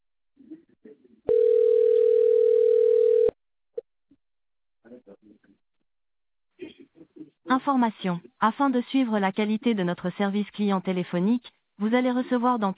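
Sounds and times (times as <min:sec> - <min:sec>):
telephone ringing tone while connecting to a customer service advisor: 0:01.3 - 0:03.4
speech: 0:07.7 - 0:12.7.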